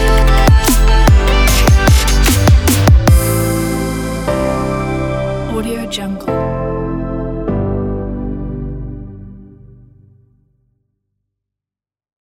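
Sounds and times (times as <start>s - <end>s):
chill trap R&B music: 0.0s - 6.8s.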